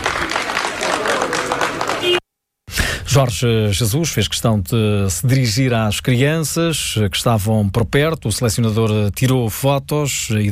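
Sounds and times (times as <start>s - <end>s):
crowd applauding outside team hotel: 0.0s - 2.2s
speech: 3.2s - 10.5s.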